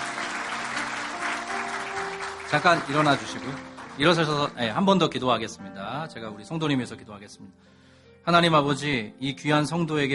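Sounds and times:
church congregation applauding to welcome a new learner member: 0:00.0 - 0:05.2
speech: 0:02.5 - 0:10.1.

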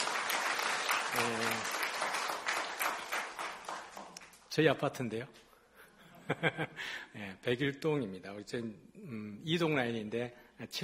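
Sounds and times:
church congregation applause welcoming a new family: 0:00.0 - 0:04.5
speech: 0:01.1 - 0:01.6, 0:04.6 - 0:05.4, 0:06.3 - 0:10.8.

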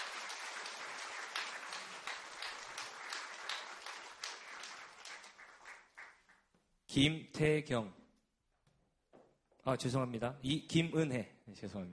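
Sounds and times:
audience applause: 0:00.0 - 0:06.4
speech: 0:06.9 - 0:08.0, 0:09.6 - 0:11.9.

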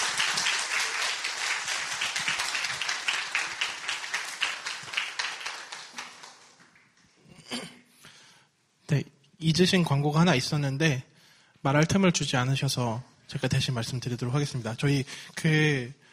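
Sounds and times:
audience applause welcoming speaker: 0:00.0 - 0:07.0
speech: 0:08.9 - 0:16.1.

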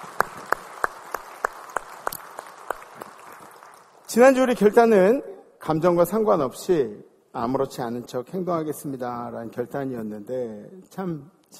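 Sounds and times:
audience applause: 0:00.0 - 0:04.0
speech: 0:04.1 - 0:11.5.

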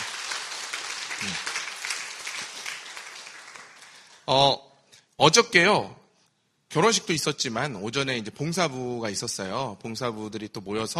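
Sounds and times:
audience applauding to congratulate a wedding: 0:00.0 - 0:04.3
speech: 0:01.2 - 0:01.5, 0:04.3 - 0:04.6, 0:05.2 - 0:06.0, 0:06.8 - 0:10.9.

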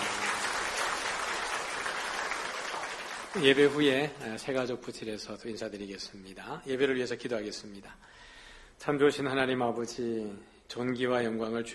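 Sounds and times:
audience applause: 0:00.0 - 0:04.1
speech: 0:03.3 - 0:11.7.

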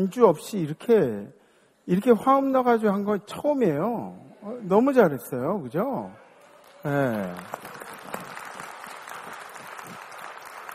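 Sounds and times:
speech: 0:00.0 - 0:06.2, 0:06.8 - 0:07.8
audience clapping: 0:06.4 - 0:10.7.

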